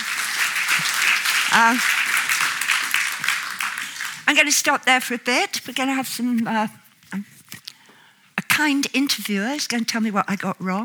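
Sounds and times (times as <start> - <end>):
audience clapping: 0.0 - 4.7
speech: 1.6 - 2.5, 4.3 - 7.3, 8.6 - 10.8.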